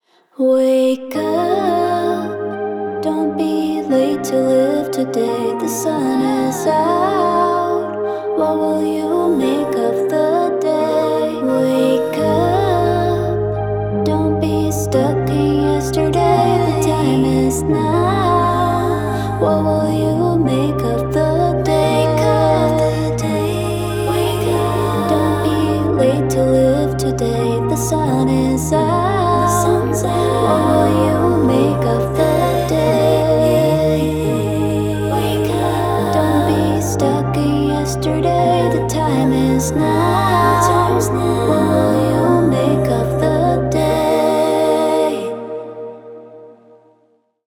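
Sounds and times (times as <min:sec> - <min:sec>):
vocal production: 0:00.0 - 0:47.4.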